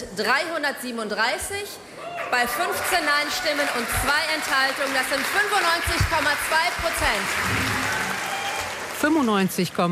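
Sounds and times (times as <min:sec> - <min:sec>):
speech: 0:00.0 - 0:08.0, 0:09.0 - 0:09.9
delegates applauding and cheering at an SPD party conference: 0:02.0 - 0:09.9.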